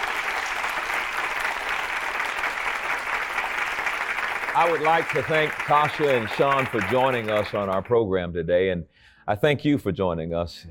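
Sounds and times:
audience hand clapping: 0.0 - 8.0
speech: 4.6 - 10.6.

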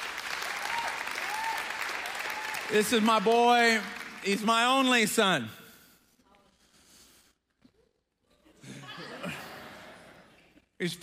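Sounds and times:
audience applause: 0.0 - 5.1
speech: 2.7 - 5.6, 10.8 - 11.0
laughter: 8.3 - 10.6.

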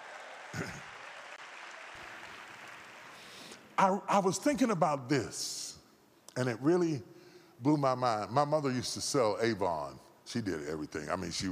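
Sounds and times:
audience clapping hands: 0.0 - 3.6
speech: 0.6 - 0.9, 3.8 - 5.7, 6.4 - 11.5.

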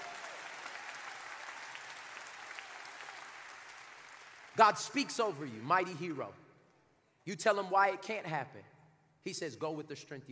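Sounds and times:
audience clapping: 0.0 - 6.0
speech: 4.6 - 6.4, 7.2 - 10.3.

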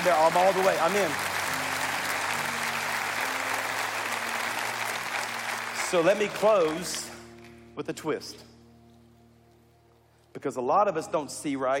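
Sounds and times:
speech: 0.0 - 1.3, 5.9 - 7.1, 7.8 - 8.5, 10.4 - 11.7
audience hand clapping: 0.0 - 7.6.

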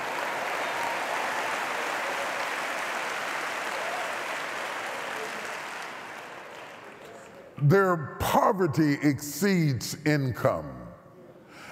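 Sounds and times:
audience clapping: 0.0 - 7.6
speech: 7.6 - 10.8.

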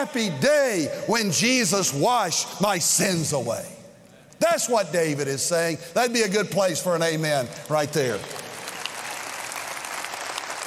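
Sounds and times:
speech: 0.0 - 3.8, 4.4 - 8.4
audience applause: 7.7 - 10.6.

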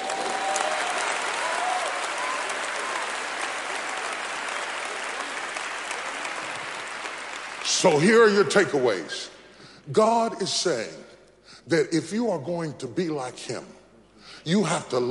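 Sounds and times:
audience clapping: 0.0 - 9.1
speech: 7.8 - 11.1, 11.7 - 13.8, 14.4 - 15.0.

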